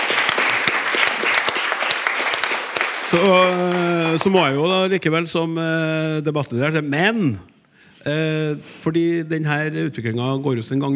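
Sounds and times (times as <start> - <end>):
applause: 0.0 - 4.9
speech: 3.1 - 10.9.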